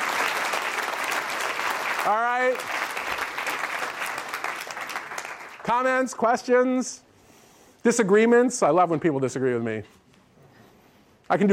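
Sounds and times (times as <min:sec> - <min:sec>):
audience applause: 0:00.0 - 0:05.8
speech: 0:02.0 - 0:02.8, 0:05.7 - 0:07.1, 0:07.8 - 0:10.0, 0:11.3 - 0:11.5.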